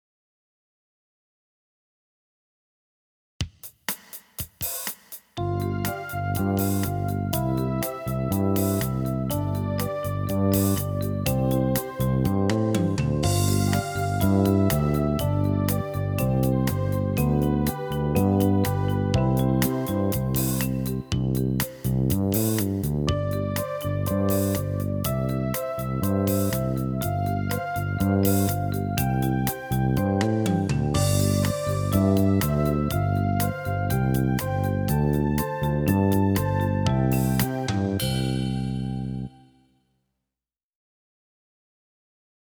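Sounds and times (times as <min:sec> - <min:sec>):
piano interval studies: 0:05.4 - 0:39.3.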